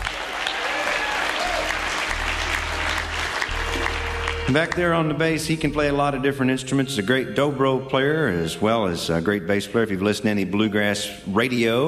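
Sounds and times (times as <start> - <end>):
concert audience applause welcoming a bluegrass band member: 0.0 - 5.2
speech: 4.5 - 11.8.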